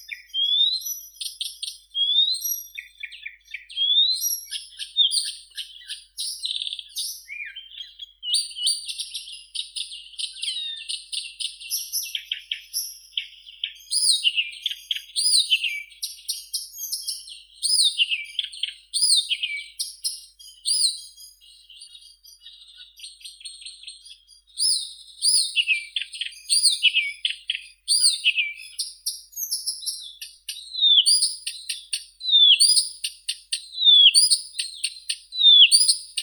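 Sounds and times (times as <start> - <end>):
Blyth's reed warbler Acrocephalus dumetorum singing: 0.0 - 36.2.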